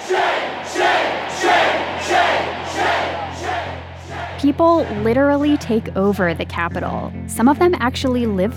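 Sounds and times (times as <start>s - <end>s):
protest crowd chanting: 0.0s - 6.0s
speech: 4.4s - 8.5s.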